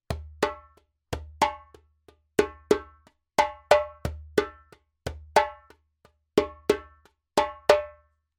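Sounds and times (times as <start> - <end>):
djembe drumming: 0.1 - 1.8, 2.4 - 5.8, 6.4 - 7.9.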